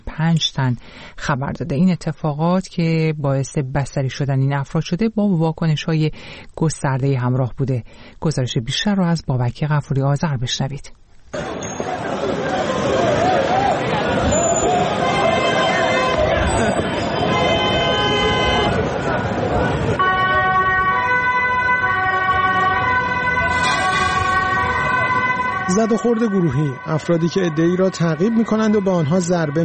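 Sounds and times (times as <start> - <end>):
speech: 0.2 - 11.5, 25.8 - 29.6
emergency and police sirens: 11.4 - 29.6.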